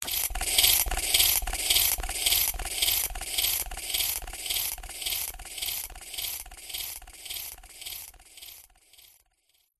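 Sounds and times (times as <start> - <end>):
futuristic alien pump device chatter: 0.0 - 9.0.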